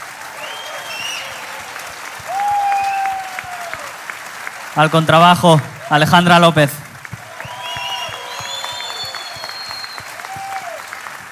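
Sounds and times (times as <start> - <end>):
audience clapping: 0.0 - 11.3
speech: 4.8 - 6.8
long high whistle-like tone: 7.4 - 10.2.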